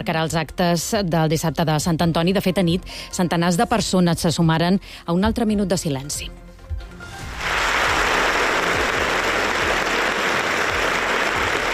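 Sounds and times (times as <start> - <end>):
speech: 0.0 - 6.4
audience applause in an auditorium: 7.3 - 11.7.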